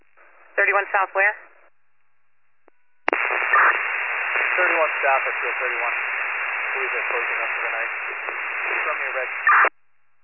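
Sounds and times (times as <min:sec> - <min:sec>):
radio static: 0:00.4 - 0:01.5, 0:03.1 - 0:09.7
speech: 0:00.6 - 0:01.5, 0:04.6 - 0:06.1, 0:06.8 - 0:09.7
unintelligible voice in radio static: 0:04.6 - 0:06.0, 0:06.7 - 0:09.3.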